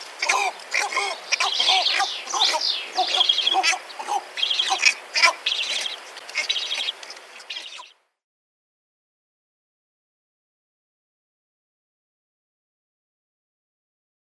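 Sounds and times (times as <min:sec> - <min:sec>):
Bald Ibis calling: 0:00.0 - 0:08.0.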